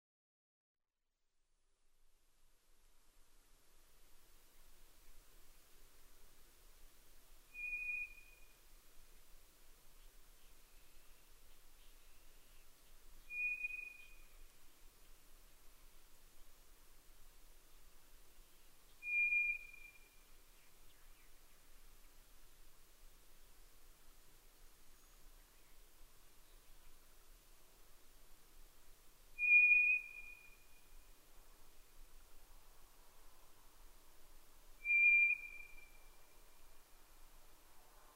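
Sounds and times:
background hiss: 0:01.6 - 0:38.1
White's thrush thin whistle: 0:07.5 - 0:08.6, 0:10.7 - 0:14.5, 0:18.5 - 0:21.7, 0:29.4 - 0:31.2, 0:34.8 - 0:36.7.

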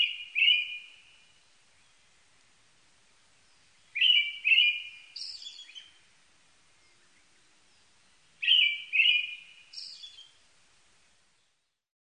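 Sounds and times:
brown-headed thrush song: 0:00.0 - 0:01.2, 0:04.0 - 0:06.0, 0:08.4 - 0:10.4.

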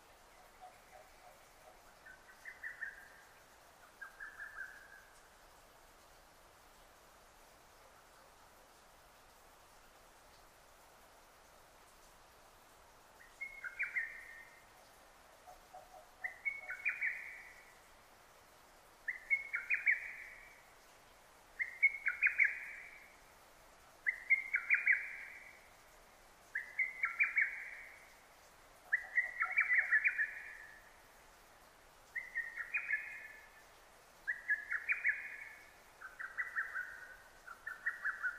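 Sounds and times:
soft hiss: 0:00.0 - 0:38.3
lesser cuckoo whistled phrases: 0:00.4 - 0:03.2, 0:04.0 - 0:05.2, 0:13.4 - 0:14.6, 0:15.5 - 0:17.7, 0:19.1 - 0:20.6, 0:21.6 - 0:23.1, 0:24.0 - 0:25.6, 0:26.5 - 0:28.0, 0:28.9 - 0:30.9, 0:32.1 - 0:33.6, 0:34.2 - 0:38.3.

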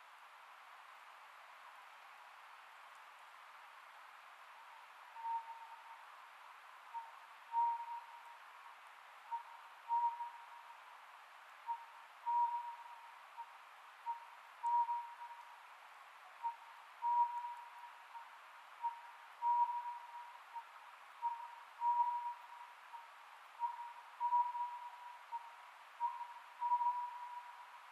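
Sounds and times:
soft hiss: 0:00.0 - 0:27.9
Oriental scops owl whistled calls: 0:05.2 - 0:06.0, 0:06.9 - 0:08.4, 0:09.3 - 0:10.8, 0:11.7 - 0:13.5, 0:14.1 - 0:15.4, 0:16.4 - 0:27.8.

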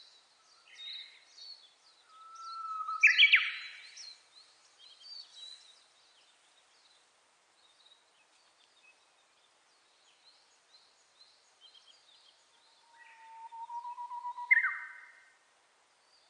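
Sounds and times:
Japanese bush warbler song: 0:00.0 - 0:07.0, 0:07.6 - 0:15.3.

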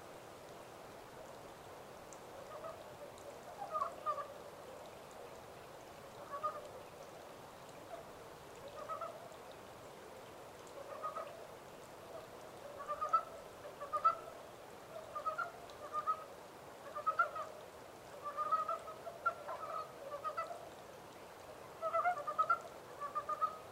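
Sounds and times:
faint hiss: 0:00.0 - 0:23.7
montane brown frog clucking: 0:03.6 - 0:04.3, 0:06.2 - 0:06.7, 0:08.8 - 0:09.2, 0:12.7 - 0:14.3, 0:15.1 - 0:16.3, 0:16.9 - 0:17.5, 0:18.2 - 0:20.5, 0:21.8 - 0:23.6.

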